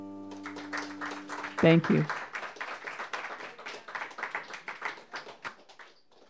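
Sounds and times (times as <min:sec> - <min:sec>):
audience applause: 0:00.3 - 0:06.2
speech: 0:01.6 - 0:02.2.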